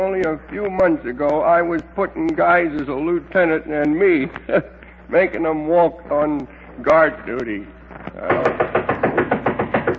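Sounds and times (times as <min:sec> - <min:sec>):
speech: 0:00.0 - 0:08.6
knocking on a door: 0:08.2 - 0:09.9.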